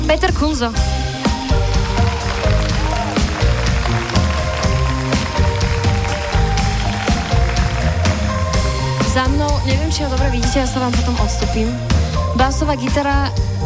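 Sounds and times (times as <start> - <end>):
speech: 0.1 - 1.0, 9.2 - 13.5
audience applause: 0.9 - 9.6.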